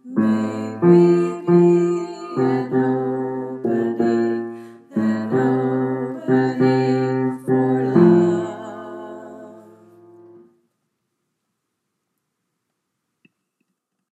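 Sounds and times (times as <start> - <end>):
bass choir: 0.0 - 10.4.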